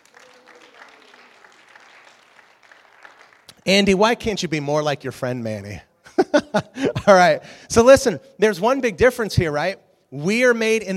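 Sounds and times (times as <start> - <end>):
audience applause: 0.0 - 3.7
speech: 3.6 - 5.9, 6.5 - 10.9
laughter: 6.1 - 7.3.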